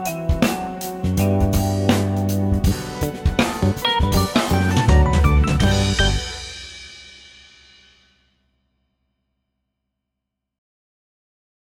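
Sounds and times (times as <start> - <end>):
cadenza playalong: 1.2 - 7.2.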